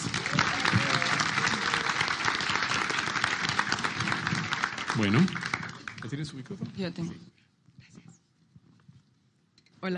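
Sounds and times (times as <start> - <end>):
audience applause: 0.0 - 6.6
speech: 5.0 - 7.4.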